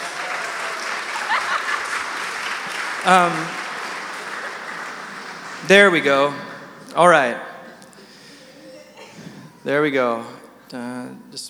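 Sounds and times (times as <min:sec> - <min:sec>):
audience applause: 0:00.0 - 0:07.9
laughter: 0:00.7 - 0:06.9, 0:07.6 - 0:09.6
speech: 0:03.0 - 0:03.6, 0:05.6 - 0:07.5, 0:09.6 - 0:11.4.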